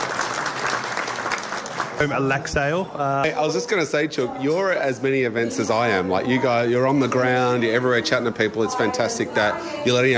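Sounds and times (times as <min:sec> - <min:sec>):
audience applause at a community gathering: 0:00.0 - 0:02.8
speech: 0:02.0 - 0:10.1.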